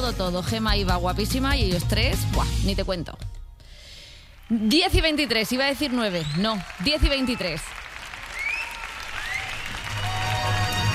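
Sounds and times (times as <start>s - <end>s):
speech: 0.1s - 3.3s, 4.5s - 7.8s
applause from a live flamenco show at Chamartín station: 4.4s - 10.9s.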